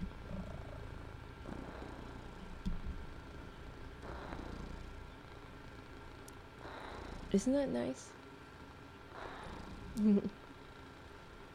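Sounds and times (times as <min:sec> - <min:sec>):
cat purring: 0:00.0 - 0:08.0, 0:09.1 - 0:11.3
speech: 0:07.3 - 0:08.2, 0:10.0 - 0:10.4.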